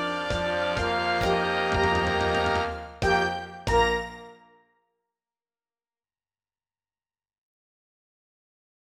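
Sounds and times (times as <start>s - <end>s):
orchestral interlude: 0.0s - 4.6s.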